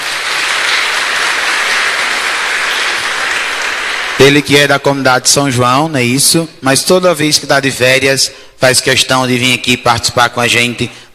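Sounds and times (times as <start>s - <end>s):
audience applauding: 0.0s - 4.5s
speech: 4.2s - 11.1s.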